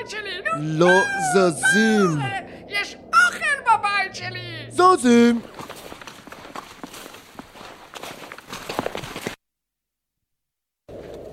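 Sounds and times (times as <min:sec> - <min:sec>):
speech: 0:00.5 - 0:02.5, 0:04.2 - 0:05.6
man's running footsteps toward a group of guests: 0:05.4 - 0:09.4.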